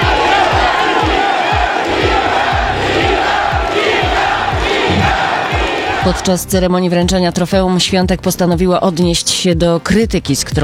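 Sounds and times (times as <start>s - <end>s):
stadium crowd cheering: 0.0s - 6.4s
deep thumping beats: 0.0s - 10.6s
speech: 6.1s - 10.6s.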